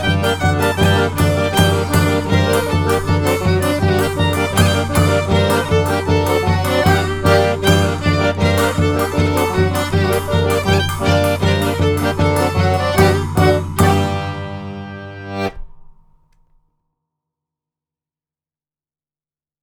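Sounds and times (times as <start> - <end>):
polka dance music: 0.0 - 15.6.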